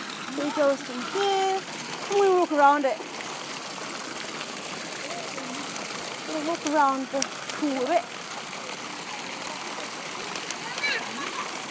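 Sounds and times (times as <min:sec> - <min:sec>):
water flowing in a fountain beside a pool: 0:00.0 - 0:11.6
speech: 0:00.4 - 0:03.2, 0:06.3 - 0:08.2.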